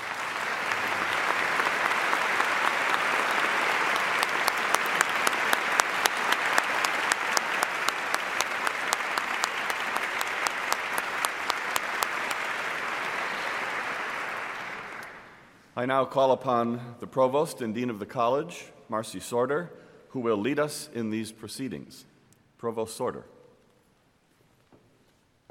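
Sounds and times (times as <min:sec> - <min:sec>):
audience applause: 0:00.0 - 0:15.5
speech: 0:15.8 - 0:23.4.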